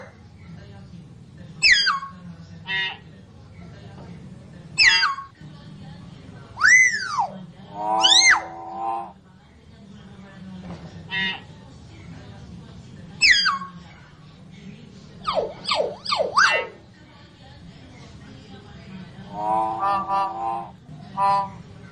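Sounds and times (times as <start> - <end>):
lovebird calls used as a lure: 1.6 - 3.0, 4.8 - 5.3, 6.6 - 9.1, 13.2 - 13.7, 15.2 - 16.8, 19.3 - 21.6.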